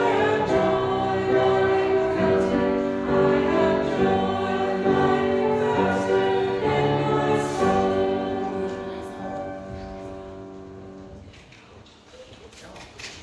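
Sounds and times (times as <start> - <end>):
children's song: 0.0 - 9.6.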